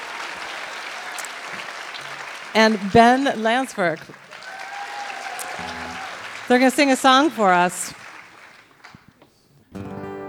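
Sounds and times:
enthusiastic applause from a live audience greeting a performer: 0.0 - 9.1
speech: 2.6 - 4.2, 6.5 - 8.0.

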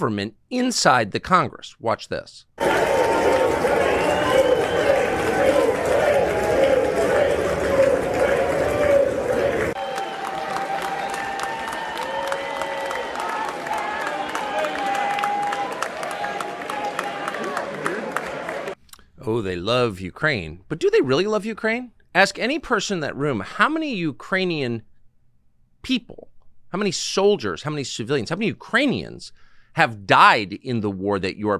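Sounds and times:
speech: 0.0 - 4.4, 19.2 - 24.9, 25.8 - 31.5
lawmakers cheering and applauding in a chamber: 2.6 - 18.8.

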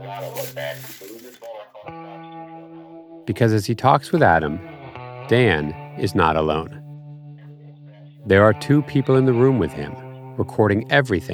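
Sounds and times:
papers shuffling: 0.0 - 1.5
speech: 0.1 - 2.2, 3.3 - 4.7, 5.3 - 6.8, 8.2 - 11.3.

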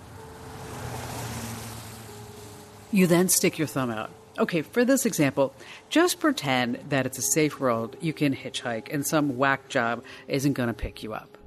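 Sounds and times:
car whizzing by: 0.0 - 4.1
speech: 2.9 - 11.4.

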